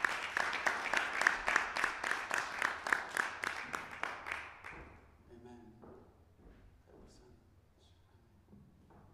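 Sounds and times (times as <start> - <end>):
church congregation clapping in unison: 0.0 - 5.0.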